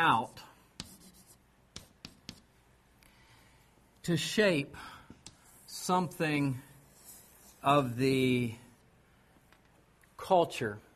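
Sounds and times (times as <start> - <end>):
speech: 0.0 - 0.4, 4.0 - 5.0, 5.8 - 6.7, 7.6 - 8.6, 10.2 - 10.8
pen strokes drawing a circle on a diagram: 0.8 - 2.5, 6.9 - 7.7.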